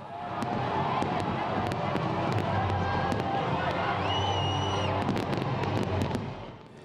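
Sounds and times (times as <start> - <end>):
firework bangs and crackles: 0.0 - 6.8
huge crowd cheering at New Year countdown: 0.0 - 6.8
whistle: 4.0 - 5.0.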